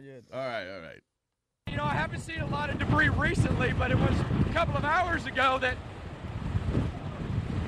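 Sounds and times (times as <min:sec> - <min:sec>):
speech: 0:00.0 - 0:01.1, 0:01.7 - 0:06.0
strong wind gust in storm: 0:01.7 - 0:07.6.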